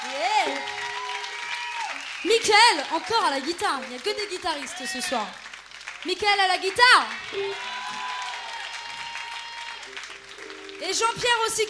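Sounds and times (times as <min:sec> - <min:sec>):
audience applause: 0:00.0 - 0:11.6
speech: 0:02.2 - 0:05.4, 0:06.0 - 0:07.7, 0:10.8 - 0:11.6.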